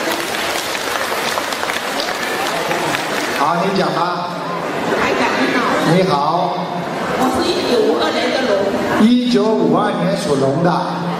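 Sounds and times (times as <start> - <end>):
audience applause: 0.0 - 5.2
speech: 3.5 - 4.3, 5.9 - 11.1.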